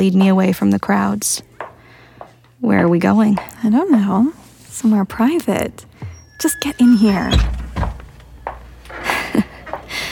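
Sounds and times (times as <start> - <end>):
speech: 0.0 - 1.5, 2.6 - 7.6
door closing: 6.0 - 9.1.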